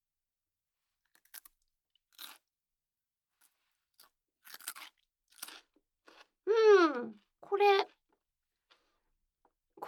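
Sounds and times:
crunchy food being bitten and chewed: 1.0 - 2.6, 3.3 - 6.4, 7.0 - 9.6.

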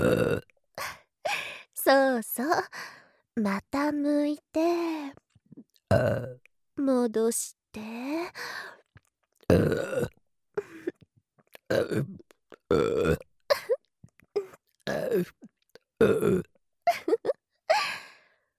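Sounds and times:
woman burping: 0.0 - 0.4, 9.5 - 11.0, 11.7 - 13.8, 14.4 - 17.4
speech: 0.0 - 0.5, 1.9 - 8.8, 9.5 - 10.2, 11.7 - 13.7, 14.9 - 15.4, 16.0 - 17.4.

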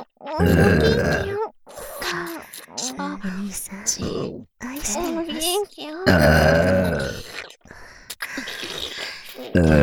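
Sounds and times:
burping: 0.0 - 2.4, 6.1 - 9.8
speech: 0.3 - 1.3, 3.5 - 6.8.

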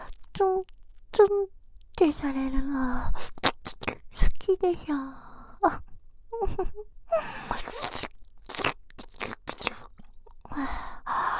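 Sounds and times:
speech: 0.4 - 3.9, 4.5 - 8.1
wet slurping mouth sounds: 3.2 - 4.1, 7.5 - 10.2.

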